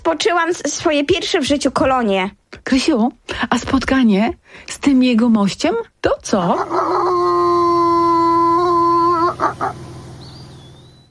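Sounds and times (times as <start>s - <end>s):
speech: 0.1s - 7.8s
low rhythmic hum: 6.5s - 11.0s
maned wolf howling call and rough yelps: 6.6s - 9.8s.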